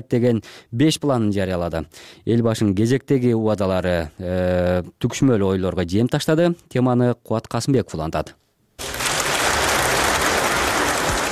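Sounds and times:
speech: 0:00.0 - 0:08.4
applause at a joint session of the Kazakh parliament: 0:08.8 - 0:11.3.

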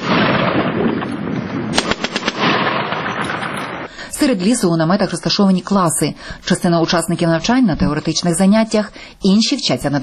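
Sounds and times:
gunfire at a military training range: 0:00.0 - 0:03.9
speech: 0:04.2 - 0:10.0.

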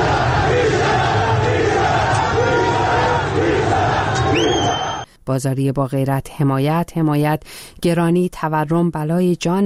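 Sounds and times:
protesters shouting chants: 0:00.0 - 0:05.0
speech: 0:05.3 - 0:09.6.

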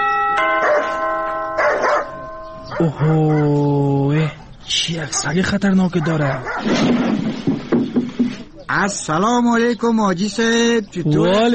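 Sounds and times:
electric doorbell buzzing at a gate: 0:00.0 - 0:02.8
dog barking: 0:00.6 - 0:01.0, 0:01.6 - 0:03.6, 0:05.9 - 0:06.7
speech: 0:02.8 - 0:07.5, 0:08.7 - 0:11.5.

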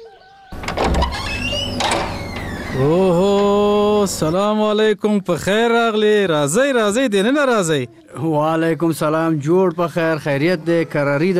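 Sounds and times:
door being opened with a scrape and creak: 0:00.5 - 0:04.4
speech: 0:02.8 - 0:03.3, 0:04.0 - 0:11.3.

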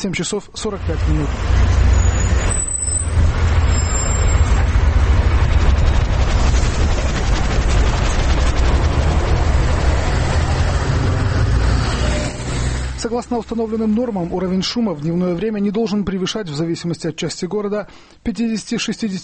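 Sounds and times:
speech: 0:00.0 - 0:02.5, 0:13.0 - 0:19.2
city bus: 0:00.6 - 0:14.8.

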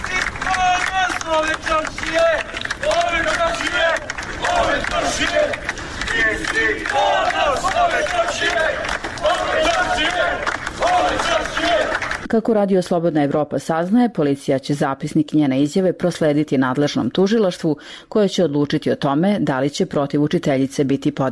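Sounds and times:
crowd of townspeople shouting in support outside a police station: 0:00.0 - 0:12.2
speech: 0:01.3 - 0:21.3.

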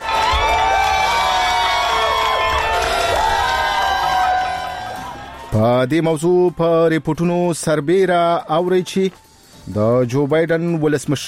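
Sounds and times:
crowd in America cheering Biden's election win announcement: 0:00.0 - 0:05.6
speech: 0:05.6 - 0:11.2.

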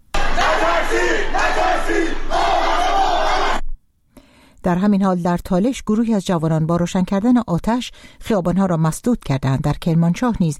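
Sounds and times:
crowd of protesters chanting slogans: 0:00.1 - 0:03.6
speech: 0:04.6 - 0:10.5.

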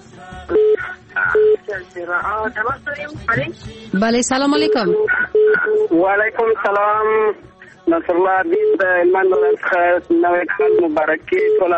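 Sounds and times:
speech: 0:01.8 - 0:11.7
electronic telephone tones signalling an incoming call: 0:04.6 - 0:06.0, 0:08.5 - 0:11.7.

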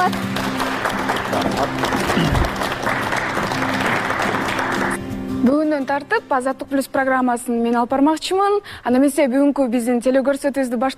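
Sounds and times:
studio audience applauding to see off the former host: 0:00.0 - 0:05.0
speech: 0:05.8 - 0:10.9.

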